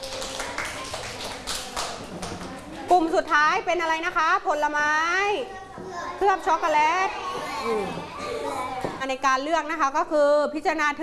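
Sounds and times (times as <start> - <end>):
students clapping for the last group in class: 0.0 - 2.7
room noise: 0.0 - 11.0
speech: 3.1 - 5.6, 6.2 - 8.1, 9.0 - 11.0.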